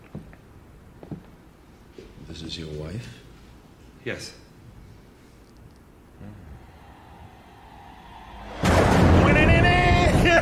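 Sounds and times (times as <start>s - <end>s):
speech: 2.3s - 3.2s, 4.0s - 4.4s
thunderclap sound effect: 8.2s - 10.4s.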